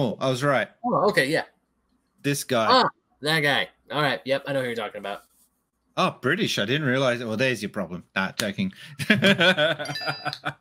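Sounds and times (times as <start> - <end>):
speech: 0.0 - 1.5, 2.2 - 5.3, 6.0 - 10.5
people chuckling: 8.8 - 10.5
phone notification ding: 9.9 - 10.4.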